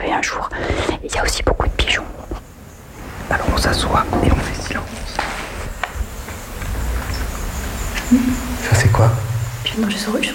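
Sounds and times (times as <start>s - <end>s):
outdoor hiss with low rumbling: 0.0s - 10.3s
speech: 0.1s - 2.3s, 3.3s - 5.3s, 8.1s - 10.3s
Eurasian crag martin chirps: 7.0s - 10.3s.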